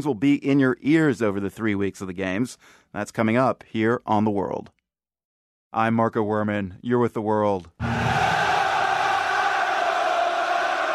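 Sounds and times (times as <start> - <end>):
speech: 0.0 - 4.8, 5.7 - 8.1
70,000 football supporters roaring and chanting at a stadium: 7.8 - 10.9.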